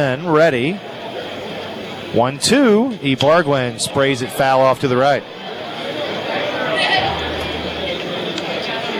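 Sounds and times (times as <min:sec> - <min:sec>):
speech: 0:00.0 - 0:01.0, 0:02.1 - 0:06.0
crowd chatter filing into Wilson Ballpark: 0:05.9 - 0:08.9.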